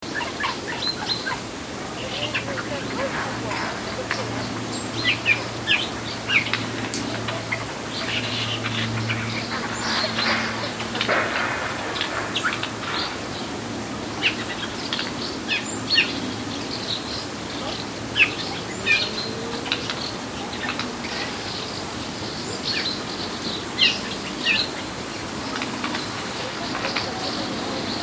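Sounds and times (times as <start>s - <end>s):
jays calling: 0.0s - 28.0s.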